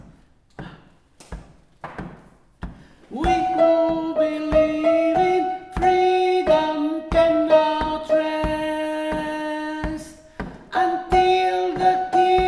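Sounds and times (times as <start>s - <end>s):
soprano singing: 3.1s - 12.4s.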